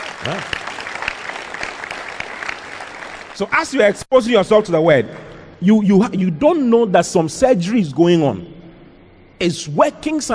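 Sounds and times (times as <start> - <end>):
audience clapping: 0.0 - 4.0
speech: 0.2 - 0.6, 3.4 - 8.5, 9.4 - 10.3.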